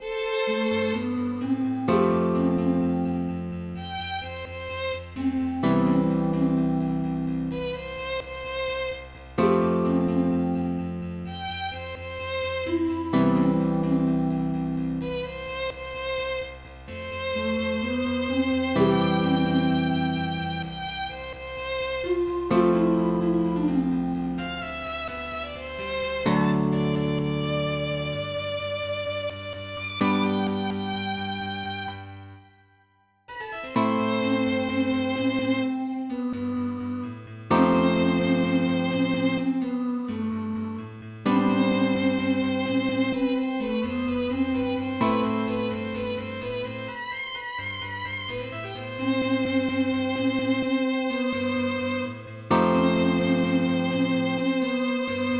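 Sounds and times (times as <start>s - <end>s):
midi music: 0.0s - 55.3s.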